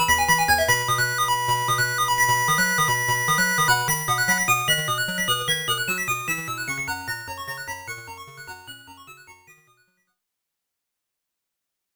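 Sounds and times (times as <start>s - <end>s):
arcade bonus stage game over name register music: 0.0s - 9.6s.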